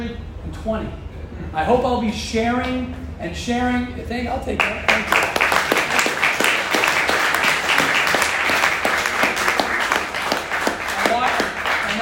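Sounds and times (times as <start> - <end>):
speech: 0.0 - 5.2
crowd clapping: 4.6 - 12.0.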